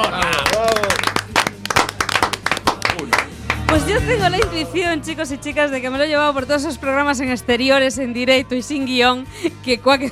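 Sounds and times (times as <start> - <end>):
people clapping: 0.0 - 4.6
speech: 3.7 - 10.1.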